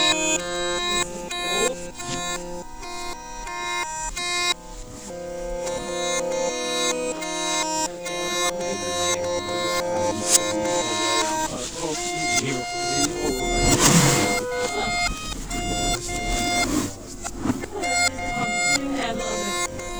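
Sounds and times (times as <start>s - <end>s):
foley sounds: 0.0s - 19.9s
laughter: 0.0s - 19.9s.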